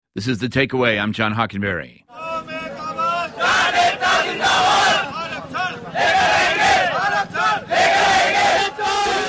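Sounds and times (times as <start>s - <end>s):
speech: 0.2s - 2.3s
protest crowd shouting outside Delhi: 2.1s - 9.2s.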